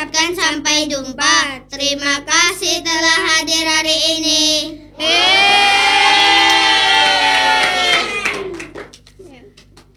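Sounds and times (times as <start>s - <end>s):
speech: 0.3s - 5.7s
children's audience cheering: 5.0s - 8.9s
children's audience clapping: 5.0s - 9.9s.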